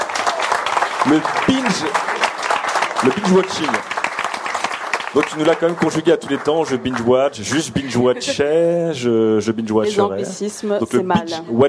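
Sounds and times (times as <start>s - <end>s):
audience applause: 0.0s - 8.4s
speech: 1.0s - 2.3s, 3.0s - 4.0s, 5.2s - 11.6s.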